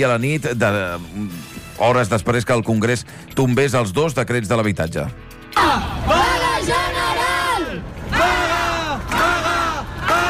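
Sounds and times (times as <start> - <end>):
speech: 0.0 - 6.2
protesters chanting at a housing protest in Barcelona: 5.6 - 10.2.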